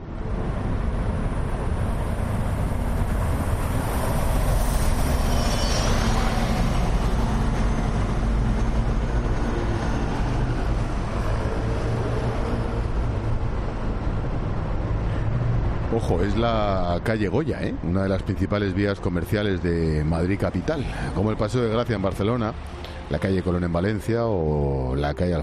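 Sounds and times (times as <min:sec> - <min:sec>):
passing traffic on Calle Goya, a shopping street in Madrid: 0:00.0 - 0:25.4
speech: 0:16.0 - 0:25.4.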